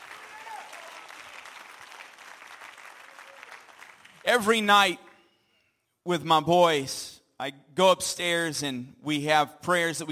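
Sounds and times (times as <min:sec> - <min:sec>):
audience clapping hands: 0:00.0 - 0:04.7
speech: 0:04.2 - 0:05.0, 0:06.0 - 0:10.0.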